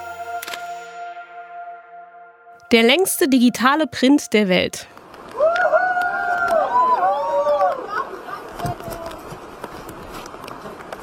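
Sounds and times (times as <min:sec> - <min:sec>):
speech: 0:02.7 - 0:04.9
crowd cheering after world record attempt: 0:05.3 - 0:08.5.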